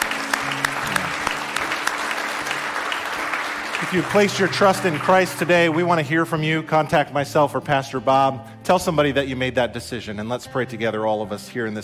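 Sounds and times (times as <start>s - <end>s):
audience applause: 0.0s - 6.0s
speech: 3.8s - 11.8s.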